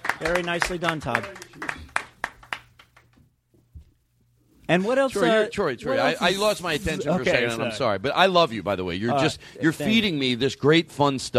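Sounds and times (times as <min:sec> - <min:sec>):
audience applause: 0:00.0 - 0:03.1
speech: 0:00.2 - 0:01.4, 0:04.7 - 0:11.3.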